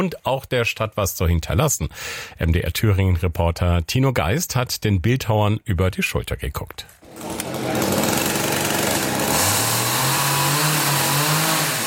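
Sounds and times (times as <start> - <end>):
speech: 0.0 - 8.0
chainsaws cutting into oak trunks: 7.0 - 11.8.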